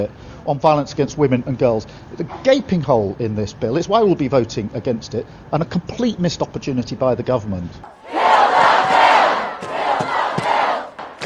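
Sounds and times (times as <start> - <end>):
speech: 0.0 - 8.0
protest crowd shouting: 7.8 - 11.2.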